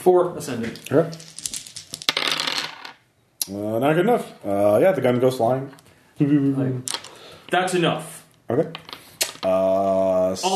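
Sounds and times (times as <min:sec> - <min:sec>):
speech: 0:00.0 - 0:01.4, 0:03.5 - 0:10.5
dice being shaken and rolled: 0:00.8 - 0:03.0, 0:06.9 - 0:07.2, 0:08.7 - 0:09.4.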